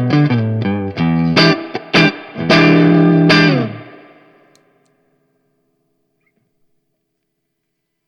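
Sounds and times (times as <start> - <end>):
guitar through a light booster effect pedal: 0.0 - 4.5.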